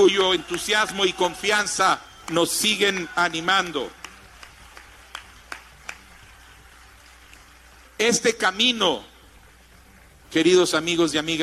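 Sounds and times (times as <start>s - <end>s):
speech: 0.0s - 4.0s, 8.0s - 9.1s, 10.3s - 11.4s
applause: 0.0s - 8.0s.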